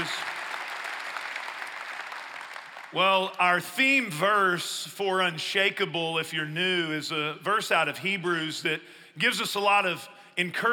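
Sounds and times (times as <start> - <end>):
audience applause: 0.0 - 3.0
speech: 2.9 - 10.7.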